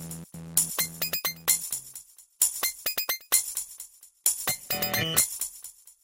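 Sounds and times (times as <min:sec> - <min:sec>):
hip hop music: 0:00.0 - 0:01.8, 0:04.5 - 0:05.2.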